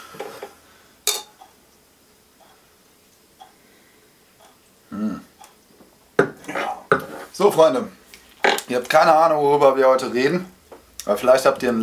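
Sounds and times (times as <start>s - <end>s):
glasses clinking in a toast: 1.1s - 1.4s
speech: 7.0s - 8.0s, 8.7s - 11.8s.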